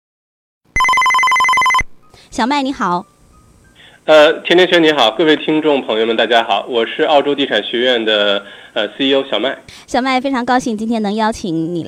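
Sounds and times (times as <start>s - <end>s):
telephone ringing: 0.8s - 1.9s
speech: 2.2s - 3.2s, 4.0s - 11.8s.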